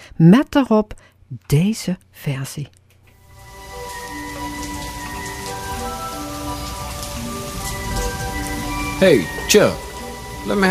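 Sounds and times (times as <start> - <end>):
speech: 0.2 - 2.8, 9.0 - 10.6
rain falling: 3.1 - 10.6.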